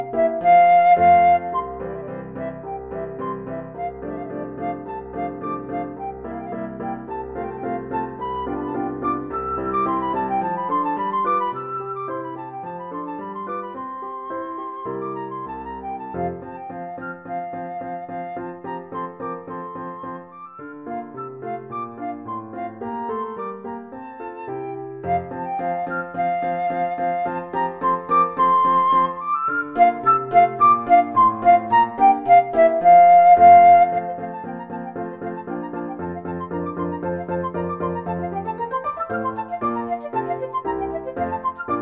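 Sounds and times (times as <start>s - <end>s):
flute: 0.0s - 41.8s.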